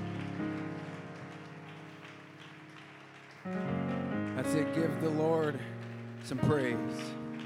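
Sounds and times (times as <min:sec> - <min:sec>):
audience clapping hands: 0:00.0 - 0:07.4
sustained keyboard chords: 0:00.0 - 0:07.4
speech: 0:03.4 - 0:03.7, 0:04.4 - 0:07.2.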